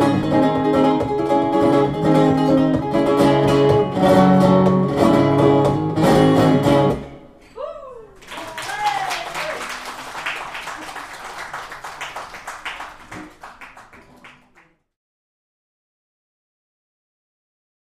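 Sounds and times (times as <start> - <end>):
tango on guitar: 0.0 - 7.4, 12.9 - 14.8.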